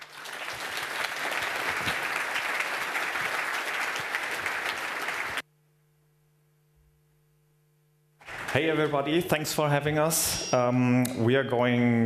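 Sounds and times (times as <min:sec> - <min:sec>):
audience applause: 0:00.0 - 0:05.4, 0:08.2 - 0:09.5
speech: 0:08.6 - 0:12.0.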